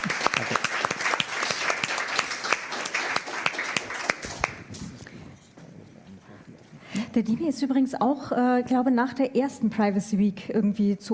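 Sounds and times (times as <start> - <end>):
audience applause: 0.0 - 4.7
speech: 7.2 - 11.1.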